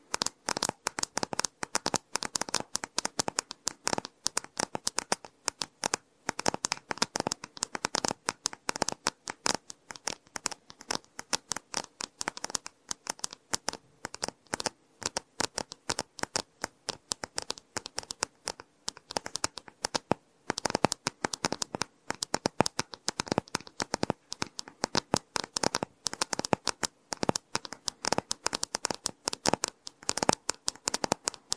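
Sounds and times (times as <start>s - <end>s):
rapid typing on a mechanical keyboard: 0.0s - 31.5s.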